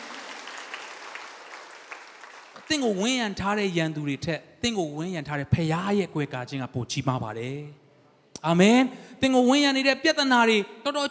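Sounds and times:
church congregation clapping in praise during a Sunday sermon: 0.0s - 3.1s
speech: 2.6s - 7.8s, 8.4s - 11.0s.

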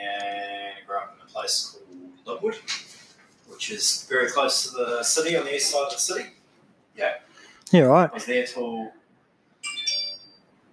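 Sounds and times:
speech: 1.3s - 2.9s, 3.5s - 6.4s, 7.0s - 9.0s
phone message notification chime: 9.6s - 10.3s.

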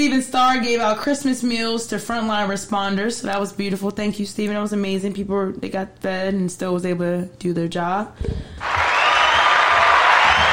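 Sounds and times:
speech: 0.0s - 8.6s
applause: 8.6s - 10.5s.

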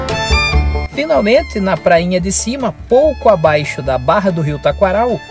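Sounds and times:
steamboat whistle signalling arrival: 0.1s - 0.9s
speech: 1.2s - 5.2s.

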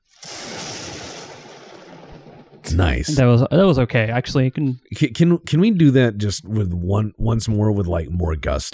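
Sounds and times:
lightning strike sound effect: 0.2s - 3.0s
speech: 2.7s - 8.7s.

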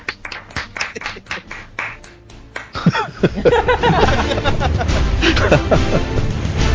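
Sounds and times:
hand clapping applause: 0.0s - 5.5s
laughter: 0.6s - 1.7s, 2.7s - 6.6s
speech: 3.2s - 6.2s.

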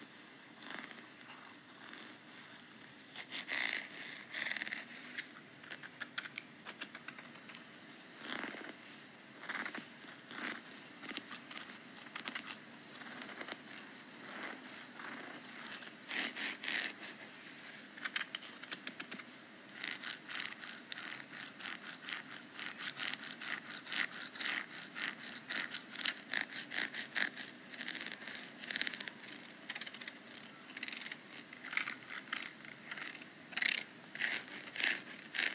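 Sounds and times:
purple comb scratching: 0.0s - 7.6s, 8.2s - 35.5s
faint low hum: 0.0s - 35.5s.

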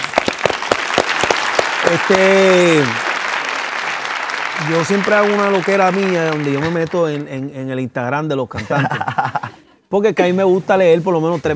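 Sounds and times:
studio applause: 0.0s - 7.7s
speech: 1.9s - 3.1s, 4.6s - 11.5s
laughter: 8.5s - 9.8s.

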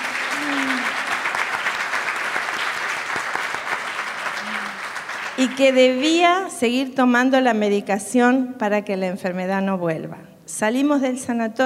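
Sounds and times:
audience applause: 0.0s - 6.1s
speech: 5.4s - 11.6s.

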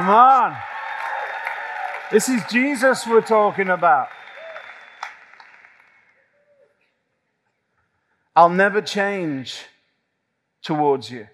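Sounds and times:
speech: 0.0s - 0.7s, 2.1s - 4.2s, 8.4s - 9.7s, 10.6s - 11.3s
golf clap, light polite clapping: 0.0s - 6.2s.

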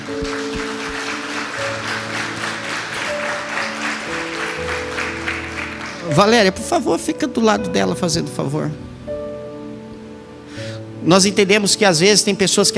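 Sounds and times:
audience applauding: 0.0s - 6.4s
speech: 6.1s - 8.9s, 11.1s - 12.7s.

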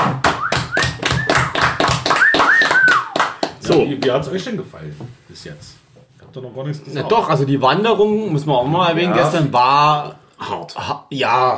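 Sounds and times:
small group clapping hands: 0.0s - 4.5s
faint whistling tones: 0.3s - 3.3s
speech: 3.7s - 11.5s.

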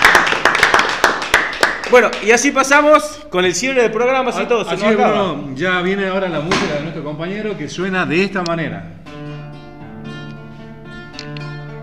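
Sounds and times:
small group applauding: 0.0s - 3.0s
speech: 1.9s - 9.0s.

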